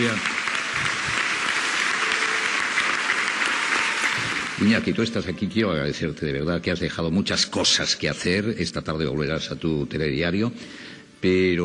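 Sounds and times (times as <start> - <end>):
speech: 0.0 - 0.9, 4.6 - 11.6
audience applause: 0.0 - 5.2.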